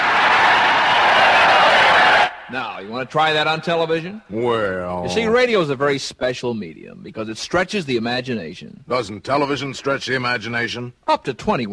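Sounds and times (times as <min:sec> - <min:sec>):
large crowd of extras cheering: 0:00.0 - 0:03.9
speech: 0:02.5 - 0:11.7.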